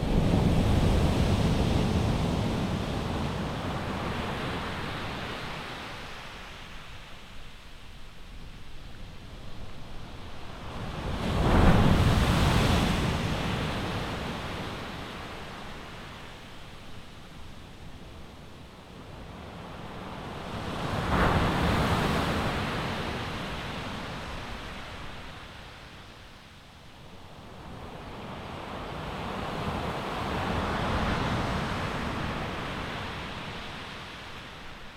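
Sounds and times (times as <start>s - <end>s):
waves in Brittany: 0.0s - 7.0s, 10.4s - 16.7s, 19.4s - 26.0s, 27.3s - 34.9s.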